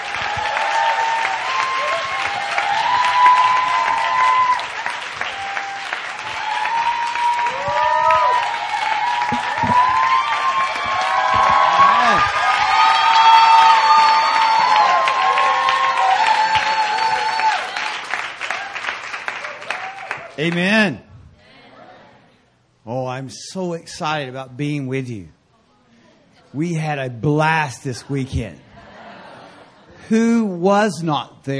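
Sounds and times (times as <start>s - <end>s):
church congregation clapping to welcome a visiting minister: 0.0s - 20.7s
church congregation whoops and shouts: 0.1s - 17.9s
speech: 20.4s - 21.0s, 23.3s - 25.4s, 26.5s - 28.6s, 30.1s - 31.5s
laughter: 27.9s - 30.1s.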